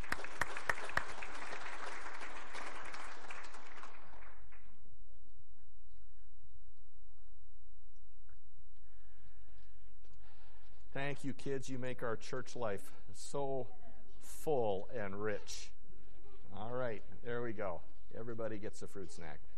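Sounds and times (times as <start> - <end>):
church congregation applauding children: 0.0 - 4.8
speech: 11.1 - 13.8, 14.4 - 15.8, 16.6 - 19.5.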